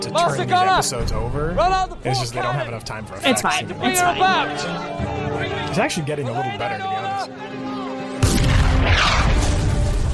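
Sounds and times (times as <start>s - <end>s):
speech: 0.1s - 7.5s
gunfire in a TV episode: 8.2s - 10.1s.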